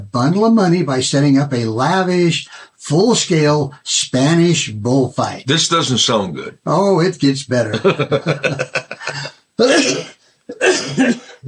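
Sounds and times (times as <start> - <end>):
speech: 0.0 - 11.4
laughter: 7.6 - 9.4
person coughing: 9.0 - 11.4.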